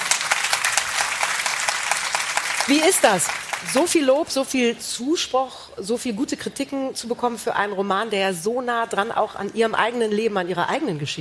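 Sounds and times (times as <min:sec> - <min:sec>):
audience applauding: 0:00.0 - 0:04.1
speech: 0:02.6 - 0:11.1.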